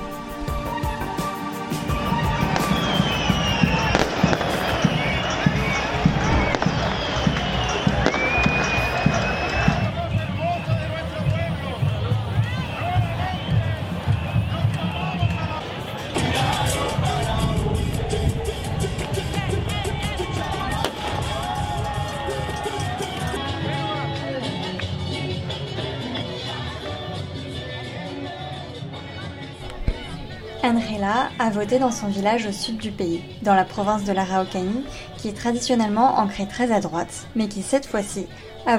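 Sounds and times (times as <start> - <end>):
rhythmic thumping: 0.0 - 23.6
large crowd celebrating in a city square: 1.7 - 30.6
speech: 31.0 - 38.7.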